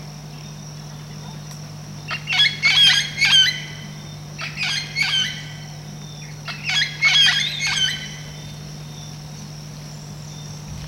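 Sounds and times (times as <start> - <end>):
low electrical hum: 0.0 - 10.8
red-tailed amazon squawking: 2.1 - 3.8, 4.4 - 5.6, 6.5 - 8.2.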